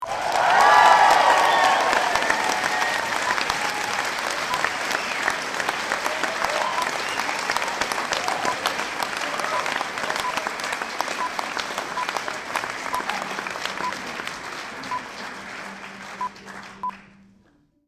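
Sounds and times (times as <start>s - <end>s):
applause: 0.0s - 17.2s.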